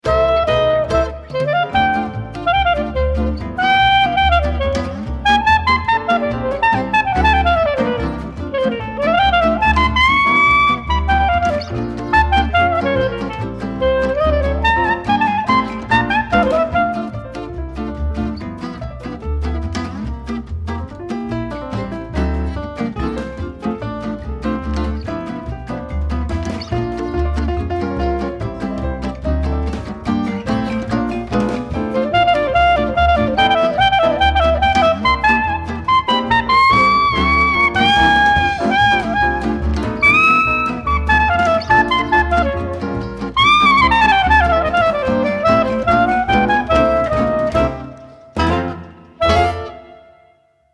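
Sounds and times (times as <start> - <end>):
clarinet swing music: 0.0 - 50.7.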